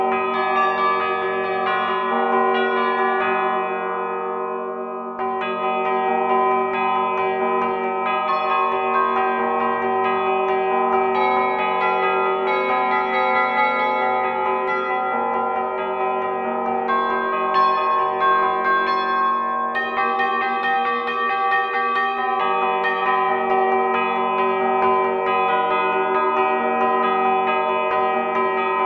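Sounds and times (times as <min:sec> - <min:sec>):
bells in 12th root phi microtonal tuning: 0:00.0 - 0:28.8.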